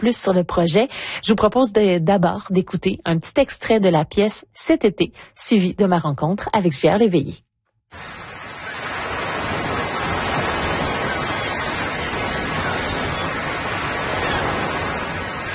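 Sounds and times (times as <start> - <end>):
speech: 0.0 - 8.1
ocean waves on a beach: 7.9 - 15.5.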